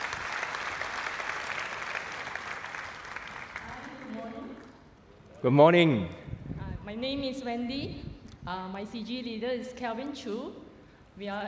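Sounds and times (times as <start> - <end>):
church congregation applauding welcoming a speaker: 0.0 - 4.7
speech: 5.4 - 6.2, 7.0 - 10.6, 11.2 - 11.4.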